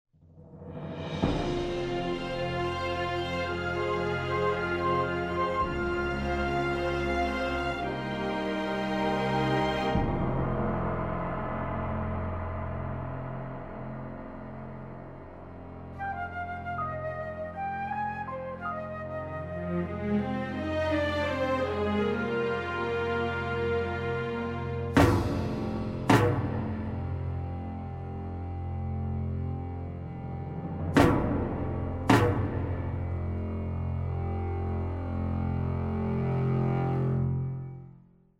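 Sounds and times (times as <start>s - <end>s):
music: 0.1s - 38.3s.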